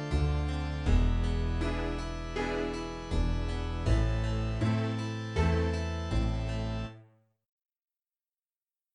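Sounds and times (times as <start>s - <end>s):
Am C add9 Dm7 chord progression: 0.0s - 7.1s.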